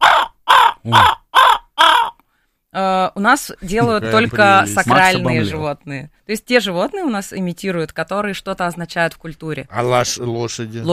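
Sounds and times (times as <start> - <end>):
raven cawing: 0.0 - 2.2
speech: 0.8 - 1.2, 3.2 - 10.9.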